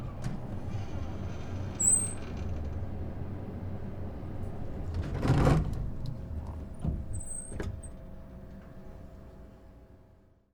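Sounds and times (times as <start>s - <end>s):
elevator ride in an office: 0.0s - 8.2s.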